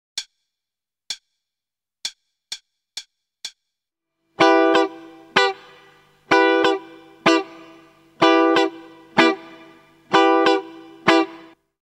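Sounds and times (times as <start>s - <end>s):
starter guitar rhythm: 4.4s - 11.6s.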